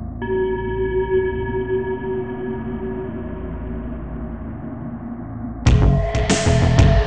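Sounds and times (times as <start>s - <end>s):
psycho spooky music: 0.2s - 7.0s.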